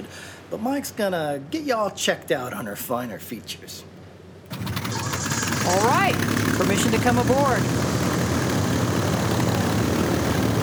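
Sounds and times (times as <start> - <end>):
speech: 0.1 - 4.0, 5.7 - 8.0
Twin Beech seaplane propeller engines roaring while taxiing out of a seaplane channel: 4.5 - 10.6.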